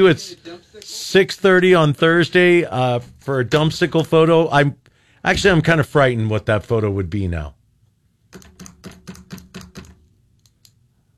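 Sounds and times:
speech: 0.0 - 7.6, 8.3 - 9.0
pen tapping: 8.3 - 10.0.

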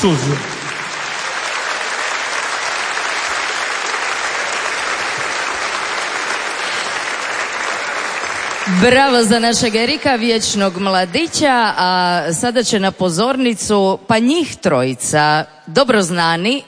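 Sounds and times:
speech: 0.0 - 0.5, 8.7 - 16.6
audience applause for an orchestra at a stage event in Istria and Kvarner: 0.0 - 11.6.

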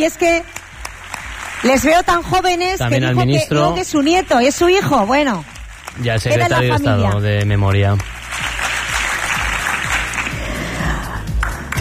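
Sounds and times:
speech: 0.0 - 0.6, 1.6 - 8.2
audience applause at ceremony: 0.6 - 2.3, 5.3 - 11.7.

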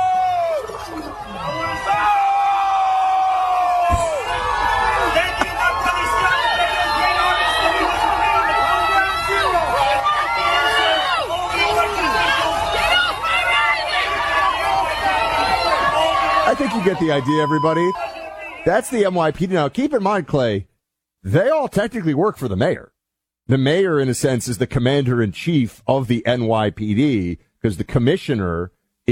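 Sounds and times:
crowd booing a speaker off stage at an NYPD event: 0.0 - 18.7
speech: 16.6 - 22.9, 23.5 - 29.1.

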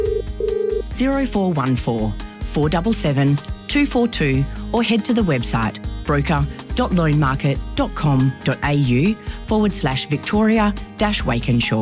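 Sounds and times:
telephone ringing: 0.0 - 0.9
speech: 1.0 - 11.8.

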